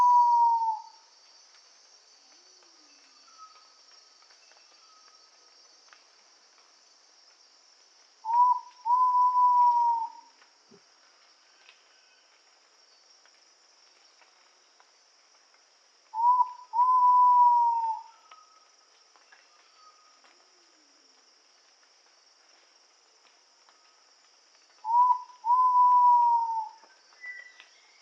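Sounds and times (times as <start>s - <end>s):
Ivory-breasted pitta Pitta maxima whistling call in Indonesia: 0.0s - 0.9s, 8.3s - 10.2s, 16.2s - 18.5s, 24.8s - 27.8s.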